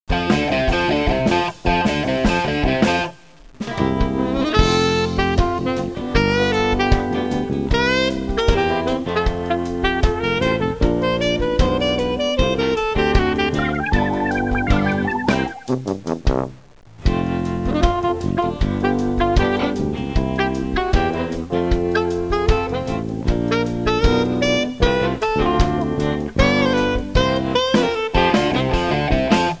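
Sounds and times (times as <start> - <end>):
music: 0.1 - 29.5.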